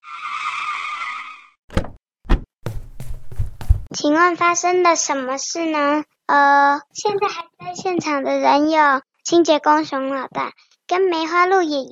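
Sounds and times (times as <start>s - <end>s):
car braking to a halt with tire squeal: 0.0s - 1.6s
heavy thumps: 1.7s - 3.9s
speech: 3.9s - 11.9s.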